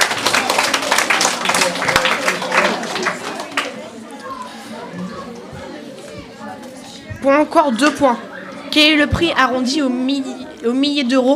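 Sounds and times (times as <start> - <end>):
audience applause: 0.0 - 4.0
speech: 7.2 - 11.3.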